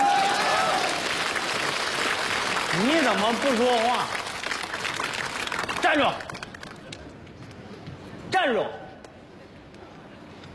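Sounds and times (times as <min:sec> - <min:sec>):
audience applause: 0:00.0 - 0:07.0
speech: 0:02.8 - 0:04.2, 0:05.9 - 0:06.4, 0:08.4 - 0:08.8.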